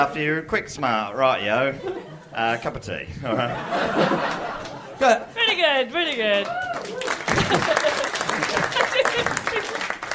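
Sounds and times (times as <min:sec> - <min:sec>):
speech: 0:00.0 - 0:09.9
laughter: 0:01.6 - 0:05.3, 0:06.9 - 0:10.0
audience clapping: 0:05.9 - 0:10.1.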